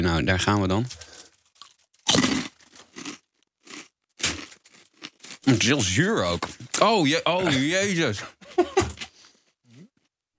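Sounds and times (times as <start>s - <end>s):
speech: 0.0s - 1.2s, 5.5s - 8.9s
person biting into and chewing a sour British dish: 0.9s - 6.9s.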